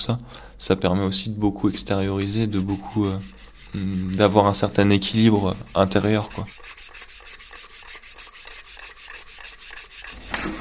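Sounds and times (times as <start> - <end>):
speech: 0.0 - 6.8
sanding a model airplane wing: 2.2 - 10.5.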